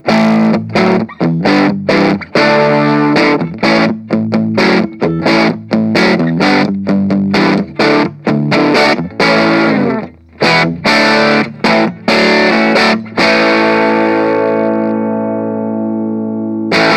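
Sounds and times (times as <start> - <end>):
electric guitar through amp clean channel pushed into crunchy overdrive: 0.0 - 16.9.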